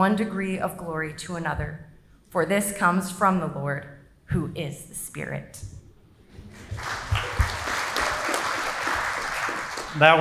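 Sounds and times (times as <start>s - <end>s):
speech: 0.0s - 5.8s, 10.0s - 10.1s
audience applause: 6.4s - 10.1s.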